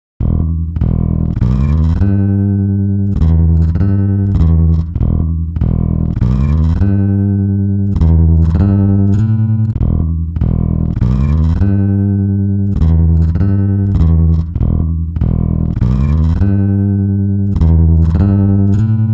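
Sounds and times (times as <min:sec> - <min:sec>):
bass: 0:00.0 - 0:19.1.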